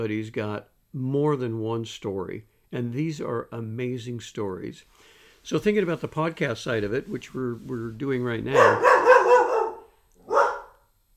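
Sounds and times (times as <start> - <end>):
speech: 0.0 - 9.1
border collie barking: 8.5 - 10.9.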